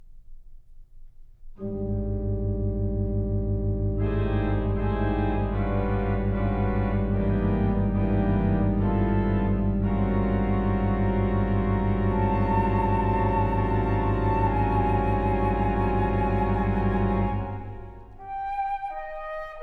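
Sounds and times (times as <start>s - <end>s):
organ: 1.6s - 18.2s
flute: 4.0s - 19.6s.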